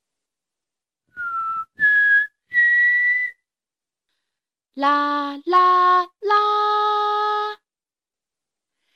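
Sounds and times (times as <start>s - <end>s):
person whistling a tune: 1.1s - 3.4s
speech: 4.8s - 6.4s.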